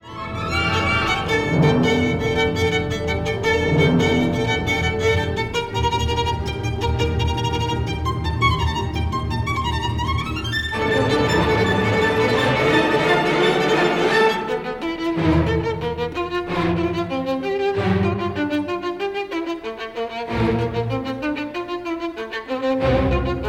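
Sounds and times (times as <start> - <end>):
violin concerto movement in A minor: 0.0 - 23.4.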